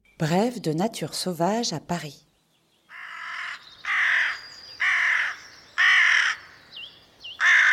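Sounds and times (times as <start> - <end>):
speech: 0.2 - 2.3
carrion crow cawing: 2.9 - 6.6, 7.4 - 7.7.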